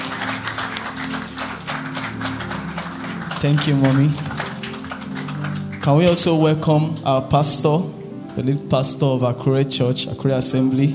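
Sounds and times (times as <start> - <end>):
audience clapping: 0.0 - 7.3
speech: 3.4 - 4.3, 5.8 - 10.9.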